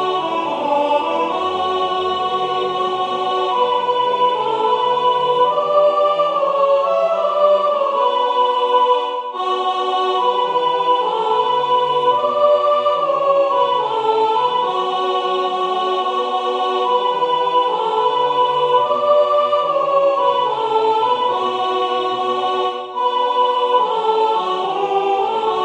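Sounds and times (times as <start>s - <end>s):
soprano singing: 0.0s - 25.6s.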